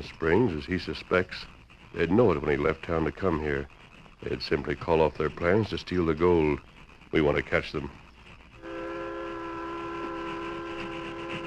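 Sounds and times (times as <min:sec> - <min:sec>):
speech: 0:00.0 - 0:08.0
train climbing a slope: 0:00.0 - 0:11.4.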